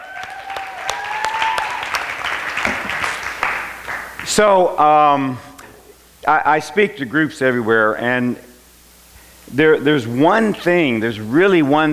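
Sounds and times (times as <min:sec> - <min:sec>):
audience applause: 0:00.0 - 0:04.2
speech: 0:04.4 - 0:05.5, 0:06.2 - 0:08.5, 0:09.5 - 0:11.9.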